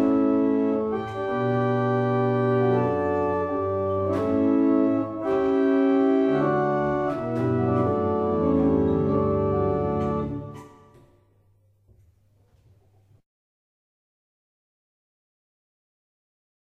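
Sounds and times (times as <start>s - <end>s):
barrel organ playing a double chant: 0.0s - 11.0s.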